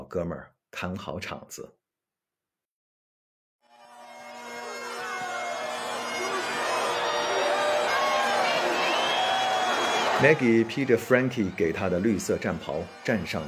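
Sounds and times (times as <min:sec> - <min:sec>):
speech: 0:00.1 - 0:01.8, 0:10.2 - 0:13.4
arena crowd cheering: 0:03.7 - 0:13.4.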